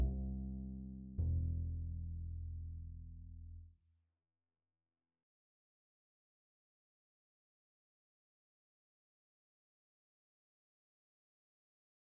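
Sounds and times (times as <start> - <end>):
string bass solo: 0.0 - 2.9.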